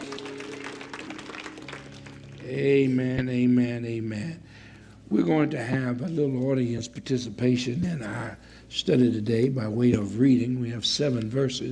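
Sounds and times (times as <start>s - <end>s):
church congregation applauding in praise: 0.0s - 2.9s
speech: 2.4s - 4.5s, 5.1s - 11.7s.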